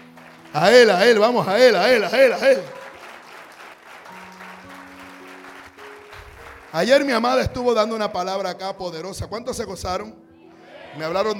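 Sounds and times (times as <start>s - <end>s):
loud audience applause: 0.0s - 7.1s
speech: 0.5s - 2.8s, 6.8s - 10.2s, 10.9s - 11.3s.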